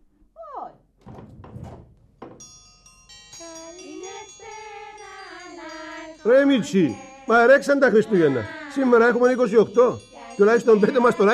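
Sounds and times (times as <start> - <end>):
door opening for arriving guests at a Christmas gathering: 1.0 - 2.6
ringing and tinkling tones: 2.3 - 11.3
speech: 6.2 - 11.3.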